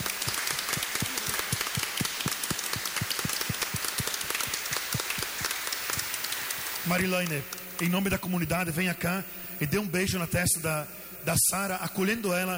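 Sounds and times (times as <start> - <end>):
audience applauding at a baptism: 0.0 - 7.9
speech: 6.9 - 12.5.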